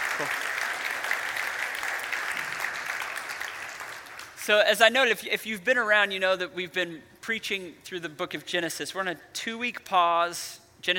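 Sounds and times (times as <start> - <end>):
church congregation applauding to welcome guests: 0.0 - 4.5
speech: 0.2 - 0.5, 4.5 - 10.9.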